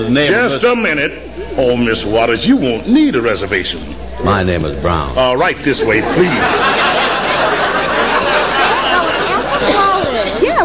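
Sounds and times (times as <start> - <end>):
speech: 0.0 - 7.5
restaurant crowd chatter: 0.0 - 10.6
people laughing: 5.5 - 10.6.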